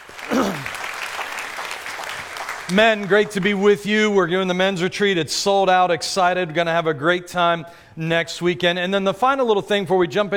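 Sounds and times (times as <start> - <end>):
church congregation applauding during a service: 0.0 - 4.2
speech: 2.7 - 10.3.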